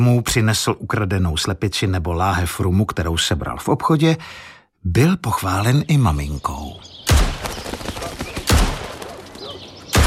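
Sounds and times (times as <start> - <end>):
speech: 0.0 - 6.9
gunshots at target practice: 7.1 - 9.2.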